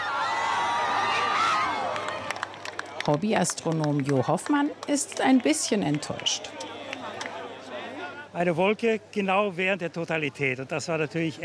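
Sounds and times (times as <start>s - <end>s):
crowd cheering and applauding at eclipse: 0.0s - 7.5s
speech: 3.1s - 6.7s, 8.4s - 11.4s.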